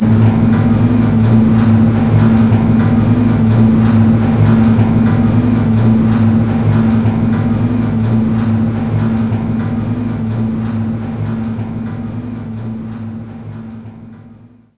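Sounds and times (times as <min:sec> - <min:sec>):
elevator loading: 0:00.0 - 0:14.6.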